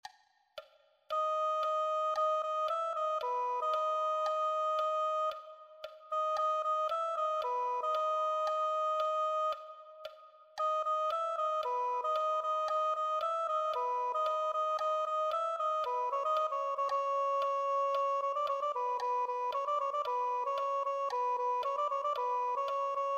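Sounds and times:
soprano saxophone: 1.1 - 23.1.

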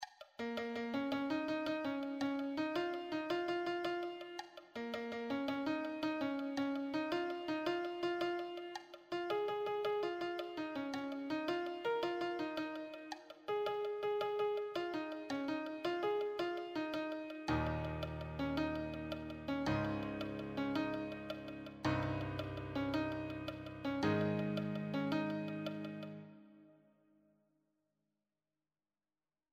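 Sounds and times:
solo piano: 0.4 - 26.6.

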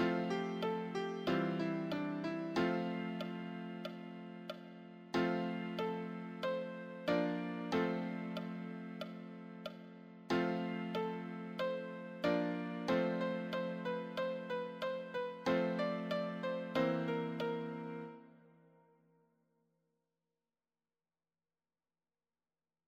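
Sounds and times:
easy solo piano: 0.0 - 18.3.

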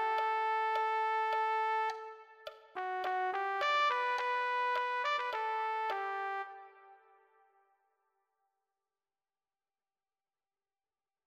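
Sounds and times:
trumpet: 0.0 - 7.6.

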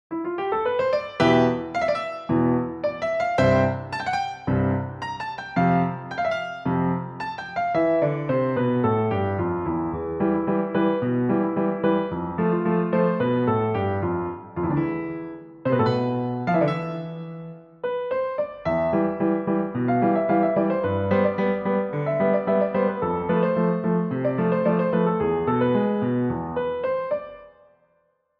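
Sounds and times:
solo piano: 0.1 - 27.8.

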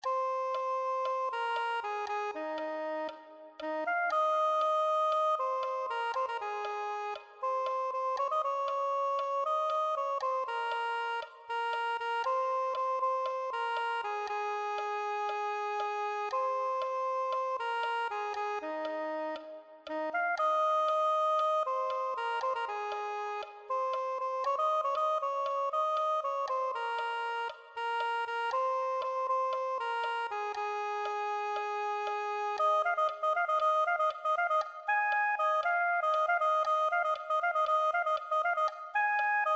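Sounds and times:
soprano saxophone: 0.0 - 39.5.

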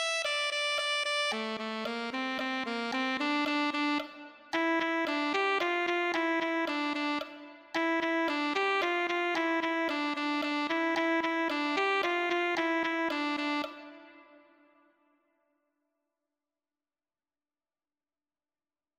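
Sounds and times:
alto saxophone: 0.2 - 14.6.

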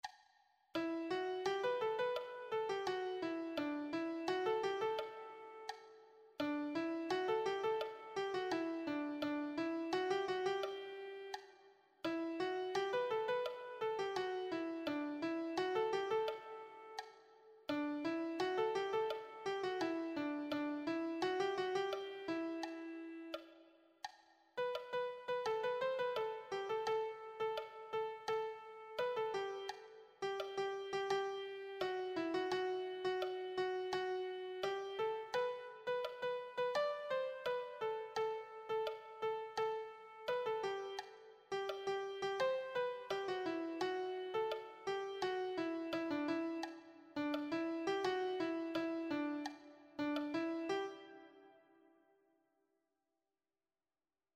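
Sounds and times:
piano reprise melody: 0.8 - 5.8, 6.4 - 11.4, 12.0 - 17.0, 17.7 - 23.4, 24.6 - 51.6.

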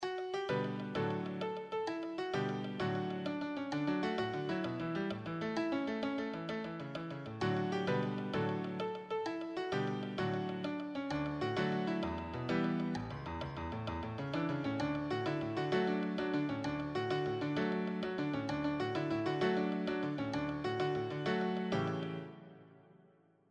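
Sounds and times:
advanced solo piano: 0.0 - 23.4.

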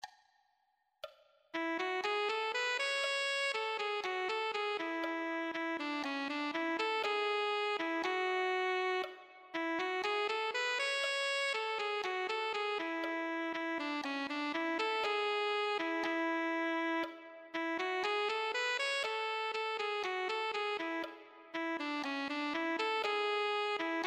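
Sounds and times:
alto saxophone: 1.6 - 24.0.

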